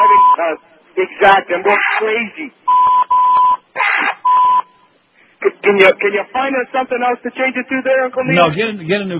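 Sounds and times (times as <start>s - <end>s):
censor bleep tone: 0.0s - 0.4s, 2.7s - 3.6s, 4.2s - 5.0s
speech: 0.4s - 3.0s, 5.6s - 9.1s.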